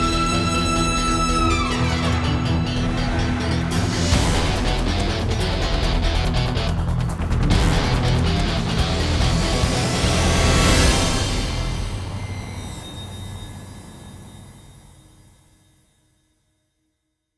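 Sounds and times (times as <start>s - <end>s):
tactical action battle music: 0.0s - 12.6s.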